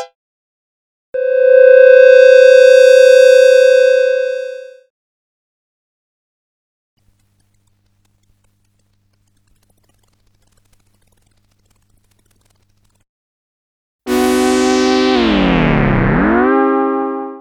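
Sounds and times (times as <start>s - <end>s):
Moog modular synthesizer: 1.2s - 4.8s, 14.1s - 17.3s.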